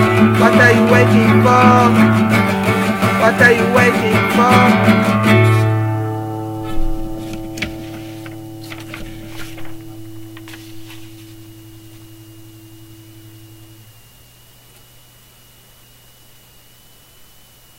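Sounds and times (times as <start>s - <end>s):
acoustic session music: 0.0s - 13.9s.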